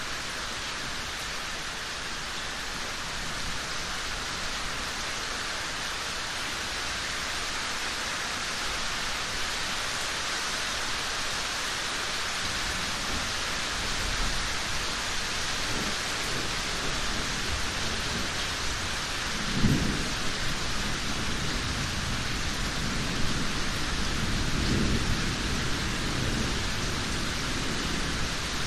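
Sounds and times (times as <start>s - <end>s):
rain drips in a yard: 0.0s - 28.6s
approaching thunderstorm: 12.4s - 28.6s.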